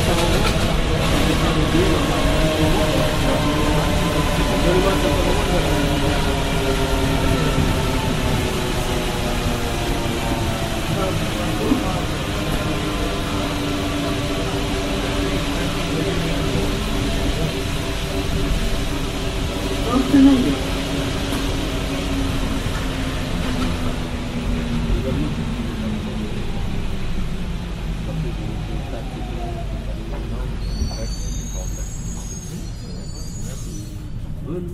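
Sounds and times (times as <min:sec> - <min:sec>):
Paris Métro train running: 0:00.0 - 0:34.7
brief high squeals: 0:30.6 - 0:34.3.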